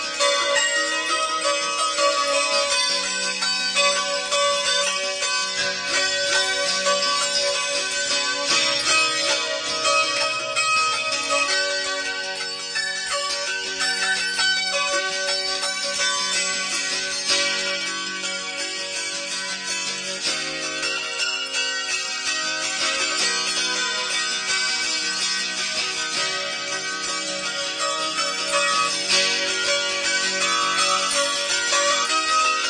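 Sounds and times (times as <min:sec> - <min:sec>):
harp song: 0:00.0 - 0:32.6.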